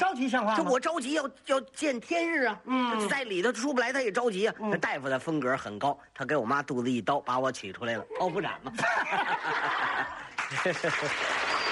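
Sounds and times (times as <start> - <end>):
speech: 0.0 - 11.5
laughter: 8.6 - 11.7
applause: 10.3 - 11.7.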